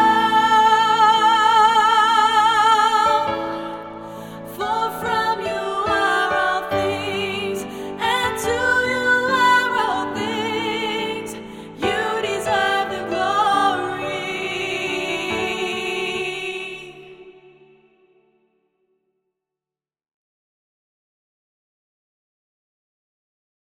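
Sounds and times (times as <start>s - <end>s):
soprano singing: 0.0s - 18.3s.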